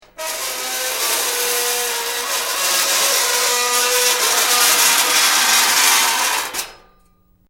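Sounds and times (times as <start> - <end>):
intense high-pitched metal screech: 0.1 - 7.0.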